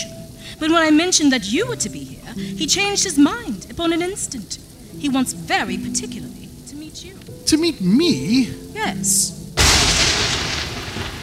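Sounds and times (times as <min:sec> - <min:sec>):
speech: 0:00.6 - 0:09.5
thunder clap: 0:09.6 - 0:11.2.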